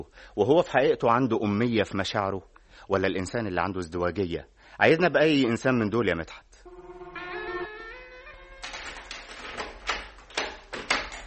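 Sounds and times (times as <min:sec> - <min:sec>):
speech: 0:00.0 - 0:06.5
door opening: 0:06.7 - 0:11.2.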